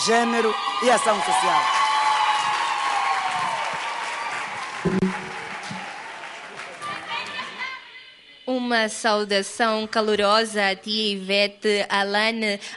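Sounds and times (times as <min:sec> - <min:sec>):
speech: 0:00.0 - 0:01.8, 0:08.6 - 0:12.7
audience applause: 0:00.0 - 0:07.7
brief voices and tonal cheers: 0:00.0 - 0:08.3.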